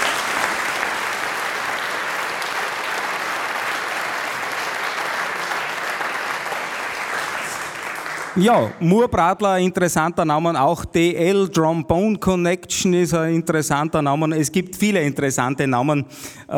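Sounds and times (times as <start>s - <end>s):
audience applause: 0.0s - 8.8s
speech: 8.4s - 16.5s.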